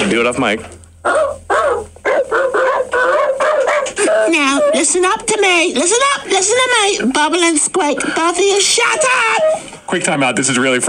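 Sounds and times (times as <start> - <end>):
speech: 0.1 - 1.4, 4.2 - 10.8
man imitating dog barking: 1.0 - 4.8.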